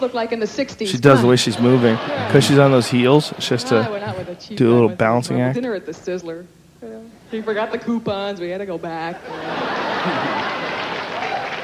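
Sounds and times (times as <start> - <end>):
speech: 0.0 - 10.4
laughter: 0.9 - 5.2, 9.0 - 11.6
audience applause: 1.0 - 3.9, 9.4 - 11.6.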